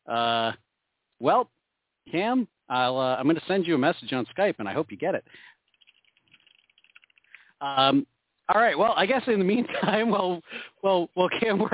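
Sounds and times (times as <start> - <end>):
speech: 0.1 - 0.6, 1.2 - 5.6, 7.6 - 11.7
typing on mechanical computer keyboard: 5.7 - 7.4.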